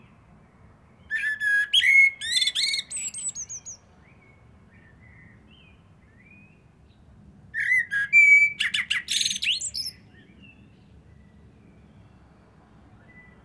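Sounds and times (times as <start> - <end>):
common blackbird Turdus merula singing: 1.0 - 6.6, 7.6 - 11.3.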